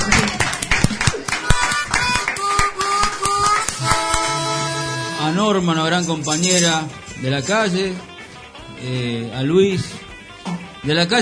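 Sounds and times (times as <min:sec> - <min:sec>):
crowd applauding: 0:00.0 - 0:05.1
speech: 0:05.5 - 0:08.1, 0:08.8 - 0:10.0, 0:10.8 - 0:11.1.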